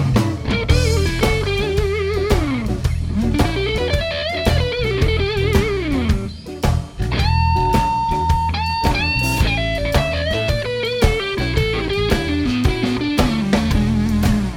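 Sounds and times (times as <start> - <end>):
blues band playing: 0.0 - 14.5.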